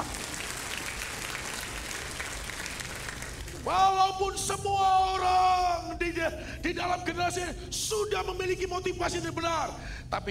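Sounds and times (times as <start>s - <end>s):
audience applause: 0.0s - 3.8s
speech: 3.6s - 10.2s.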